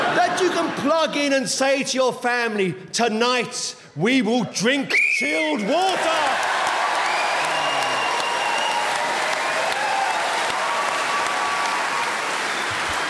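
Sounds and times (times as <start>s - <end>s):
speech: 0.6s - 6.6s
audience round of applause: 5.7s - 13.0s.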